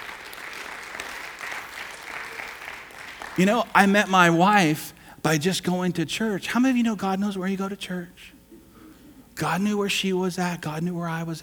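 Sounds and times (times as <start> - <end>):
round of applause: 0.0 - 4.2
speech: 3.4 - 8.4, 9.4 - 11.4.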